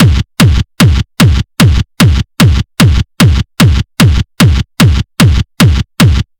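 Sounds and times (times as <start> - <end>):
hard techno schranz kick drum: 0.0 - 6.3.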